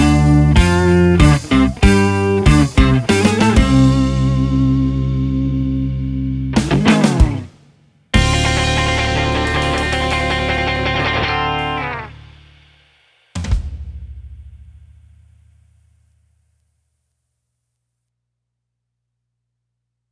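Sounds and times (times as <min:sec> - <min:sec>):
guitar: 0:00.0 - 0:12.6.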